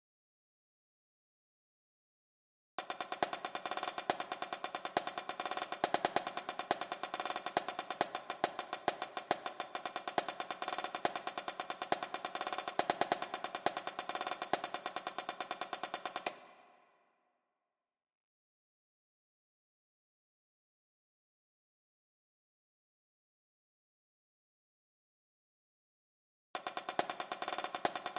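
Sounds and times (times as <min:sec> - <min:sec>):
jig snare drum: 0:02.8 - 0:16.7, 0:26.6 - 0:28.1.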